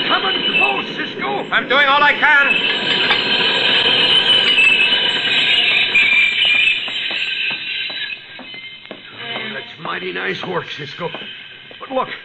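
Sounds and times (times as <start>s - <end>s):
train wheels rumbling: 0.0s - 9.4s
train brakes squealing: 0.0s - 12.2s
speech: 1.4s - 3.4s, 10.0s - 12.2s.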